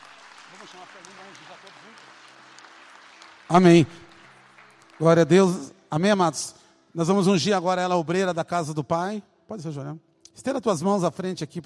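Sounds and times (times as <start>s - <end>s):
audience applause: 0.0s - 5.7s
speech: 0.7s - 2.5s, 3.5s - 4.1s, 5.0s - 11.6s.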